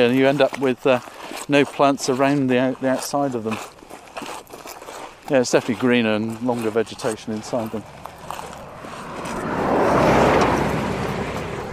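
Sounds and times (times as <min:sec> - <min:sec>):
speech: 0:00.0 - 0:04.3, 0:05.3 - 0:08.0
car speeding past on a straight coastal road: 0:07.8 - 0:11.7.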